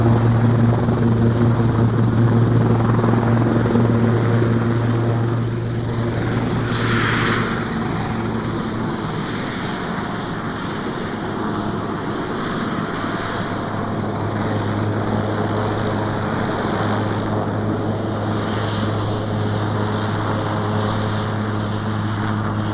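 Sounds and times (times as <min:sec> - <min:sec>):
Sikorsky S76 rescue helicopter passing and landing: 0:00.0 - 0:22.7.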